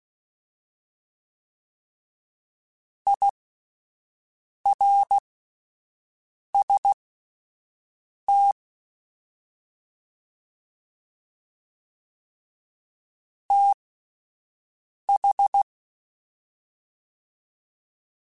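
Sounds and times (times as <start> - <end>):
fast CW Morse code groups: 3.1 - 3.3, 4.7 - 5.2, 6.6 - 7.0, 15.2 - 15.6.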